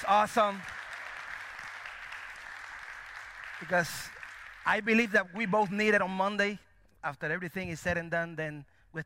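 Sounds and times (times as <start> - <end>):
speech: 0.0 - 0.7, 3.6 - 9.0
audience applauding: 0.0 - 5.3.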